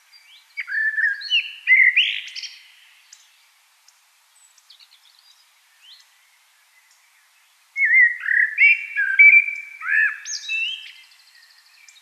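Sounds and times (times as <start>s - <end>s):
common blackbird song: 0.0s - 3.6s, 4.3s - 12.0s.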